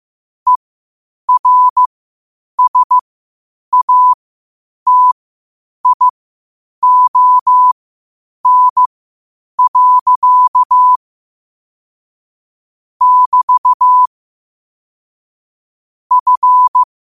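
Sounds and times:
morse code at 5 wpm: 1.3 - 1.9, 2.6 - 3.0, 3.7 - 4.2, 4.9 - 5.2, 5.8 - 6.1, 6.8 - 7.7, 8.4 - 8.9, 9.6 - 11.0, 13.0 - 14.1, 16.1 - 16.9.

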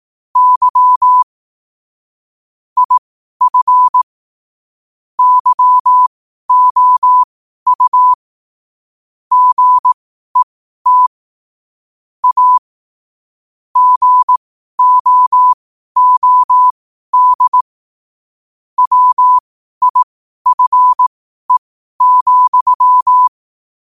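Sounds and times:
morse code at 5 wpm: 0.4 - 1.3, 2.8 - 4.0, 5.2 - 8.2, 9.3 - 11.1, 12.2 - 12.6, 13.8 - 17.6, 18.8 - 23.3.

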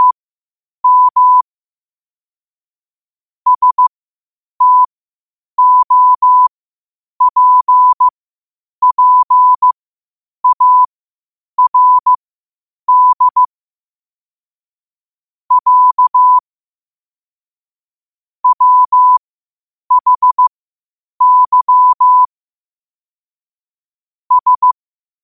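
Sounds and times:
morse code at 5 wpm: 0.8 - 1.4, 3.5 - 3.9, 4.6 - 4.9, 5.6 - 6.5, 7.2 - 8.1, 8.8 - 9.8, 10.4 - 10.9, 11.6 - 12.1, 12.9 - 13.5, 15.5 - 16.4, 18.4 - 19.2, 19.9 - 20.5, 21.2 - 22.3, 24.3 - 24.8.

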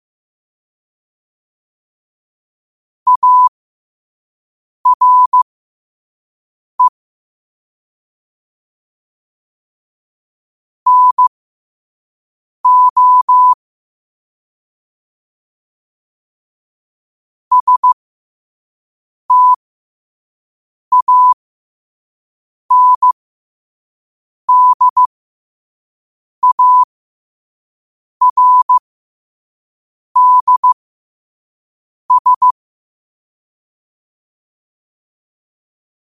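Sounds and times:
morse code at 5 wpm: 3.1 - 3.5, 4.9 - 5.4, 10.9 - 11.3, 12.7 - 13.6, 17.5 - 18.0, 19.3 - 19.6, 20.9 - 21.4, 22.7 - 23.2, 24.5 - 25.1, 26.4 - 26.9, 28.2 - 28.8, 30.2 - 30.8, 32.1 - 32.6.

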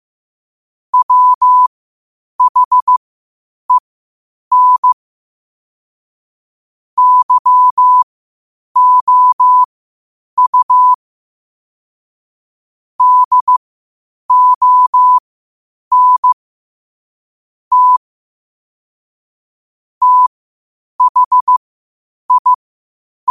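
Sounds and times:
morse code at 5 wpm: 1.0 - 1.7, 2.4 - 3.0, 4.5 - 5.0, 7.0 - 8.0, 8.8 - 9.7, 10.4 - 11.0, 13.0 - 13.6, 14.3 - 15.2, 15.9 - 16.4, 17.7 - 18.0, 20.0 - 20.3, 21.0 - 21.6, 22.3 - 22.6.

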